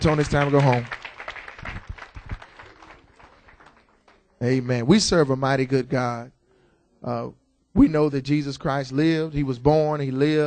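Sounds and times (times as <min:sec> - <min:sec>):
speech: 0:00.0 - 0:01.0, 0:04.4 - 0:06.4, 0:07.0 - 0:10.4
audience hand clapping: 0:00.0 - 0:04.6.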